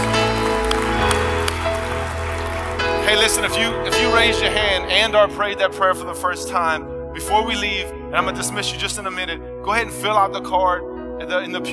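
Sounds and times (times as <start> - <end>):
audience applause: 0.0 - 4.4
speech: 3.1 - 11.7.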